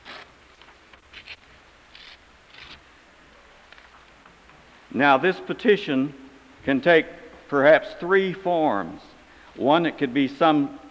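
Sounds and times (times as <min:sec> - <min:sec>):
paper programs torn by a church congregation: 0:01.1 - 0:02.8
speech: 0:04.9 - 0:10.8.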